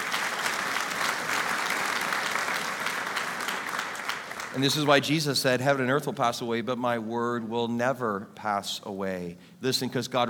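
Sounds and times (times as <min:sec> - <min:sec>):
audience applause: 0:00.0 - 0:05.1
speech: 0:04.6 - 0:10.2.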